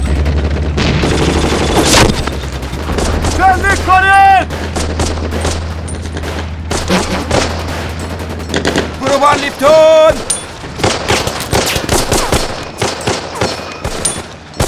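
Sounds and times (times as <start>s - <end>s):
low rumble: 0.0s - 11.5s
gunfire in a combat scene: 0.0s - 14.6s
people shouting in a combat scene: 3.4s - 4.5s.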